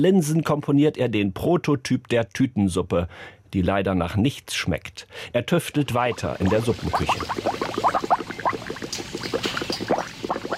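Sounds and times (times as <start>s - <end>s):
speech: 0.0s - 8.0s
liquid seasoning bubbling in kettles: 5.8s - 10.5s.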